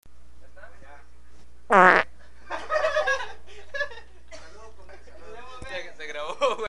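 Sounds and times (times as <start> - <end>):
farts: 1.7 - 2.1
laughter: 2.3 - 5.4.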